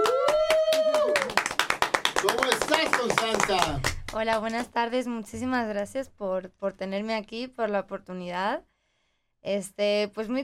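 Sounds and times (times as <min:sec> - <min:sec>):
audience applause: 0:00.0 - 0:04.1
speech: 0:03.5 - 0:08.7, 0:09.4 - 0:10.4.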